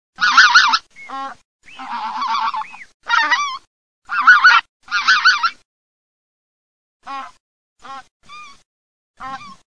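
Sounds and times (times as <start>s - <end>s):
lesser white-fronted goose calling: 0.2s - 5.6s, 7.0s - 8.6s, 9.2s - 9.6s.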